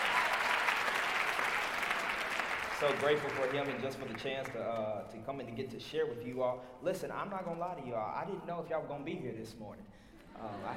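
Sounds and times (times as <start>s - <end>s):
crowd applause: 0.0s - 4.6s
speech: 2.8s - 10.7s.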